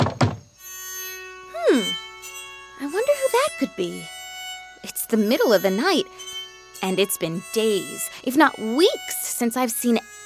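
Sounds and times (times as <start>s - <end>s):
heavy knocks on a wooden cottage door: 0.0s - 0.4s
sustained eerie musical tone sliding downward in pitch: 0.6s - 10.2s
speech: 1.7s - 2.0s, 2.8s - 4.2s, 4.8s - 10.0s.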